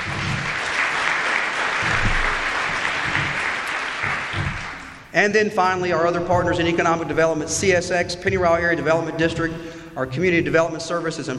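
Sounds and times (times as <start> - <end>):
audience applause: 0.0 - 5.1
speech: 5.2 - 11.3.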